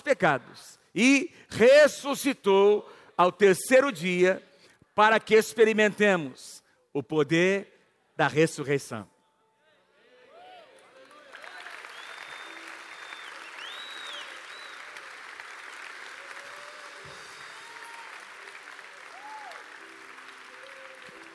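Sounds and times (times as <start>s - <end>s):
speech: 0.1s - 9.1s
audience applause: 10.8s - 21.3s.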